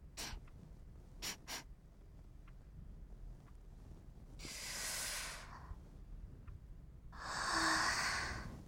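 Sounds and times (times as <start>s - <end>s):
person sniffing a customer: 0.2s - 0.4s, 1.2s - 1.6s, 4.4s - 5.7s, 7.2s - 8.5s.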